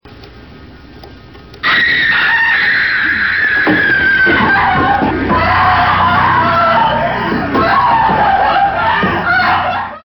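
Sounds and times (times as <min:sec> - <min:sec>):
person screaming: 0:01.6 - 0:10.0
laughter: 0:04.0 - 0:10.0.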